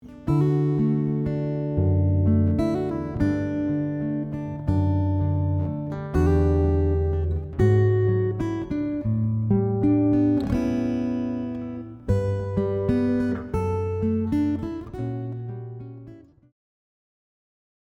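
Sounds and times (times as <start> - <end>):
guitar: 0.0 - 16.6.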